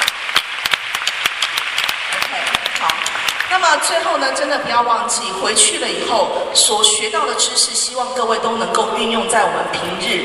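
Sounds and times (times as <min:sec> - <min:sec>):
audience applause: 0:00.0 - 0:03.6
speech: 0:03.6 - 0:10.2.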